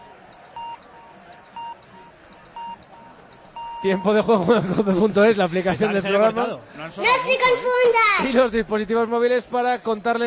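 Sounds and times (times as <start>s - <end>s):
radio time signal beeps: 0.0s - 4.2s
low murmur: 0.0s - 10.2s
speech: 3.8s - 10.2s
laughter: 3.9s - 6.6s.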